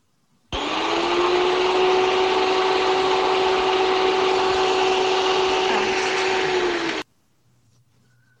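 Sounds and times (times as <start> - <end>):
electric hand mixer whirring: 0.5 - 7.0.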